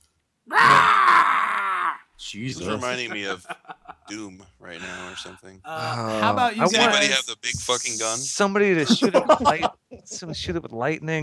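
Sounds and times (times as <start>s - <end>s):
video game creature screaming with a rough groaning edge: 0.5s - 2.1s
speech: 2.3s - 11.2s
laughter: 2.6s - 7.3s, 8.8s - 10.4s.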